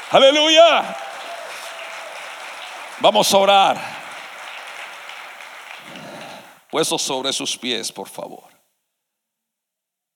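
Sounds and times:
audience applause: 0:00.0 - 0:06.7
speech: 0:00.1 - 0:01.1, 0:03.0 - 0:04.0, 0:06.7 - 0:08.5.

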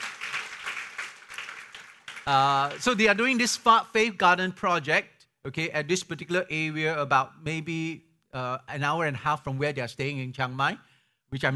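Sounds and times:
audience clapping: 0:00.0 - 0:03.5
speech: 0:02.3 - 0:11.5.

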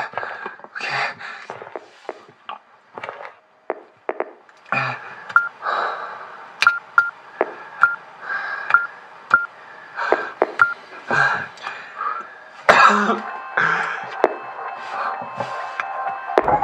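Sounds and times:
hiss: 0:00.0 - 0:16.4
electronic keypad beeps entering a door code: 0:05.3 - 0:05.6, 0:06.6 - 0:08.0, 0:08.7 - 0:09.5, 0:10.4 - 0:10.9, 0:13.2 - 0:16.5.

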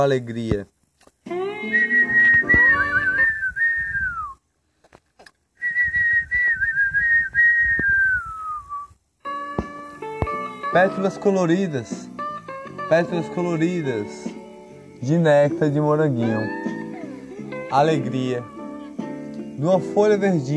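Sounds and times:
speech: 0:00.0 - 0:02.0, 0:10.8 - 0:12.1, 0:12.9 - 0:14.3, 0:15.0 - 0:16.7, 0:17.7 - 0:18.5, 0:19.6 - 0:20.5
person whistling imitation of a singing bird: 0:01.7 - 0:04.4, 0:05.6 - 0:09.0.

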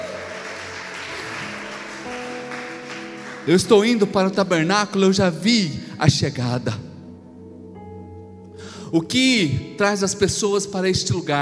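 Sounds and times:
applause: 0:00.0 - 0:04.4
speech: 0:03.4 - 0:06.8, 0:08.9 - 0:11.3.

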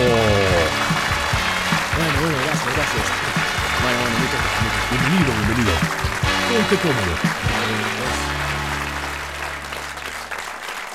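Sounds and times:
audience applauding to welcome a talk show guest: 0:00.0 - 0:10.9
speech: 0:05.0 - 0:07.4.

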